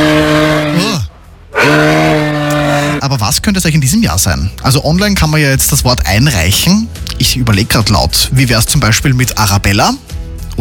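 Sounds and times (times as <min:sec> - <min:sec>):
moose bellowing: 0:00.0 - 0:03.0
speech: 0:03.4 - 0:10.6.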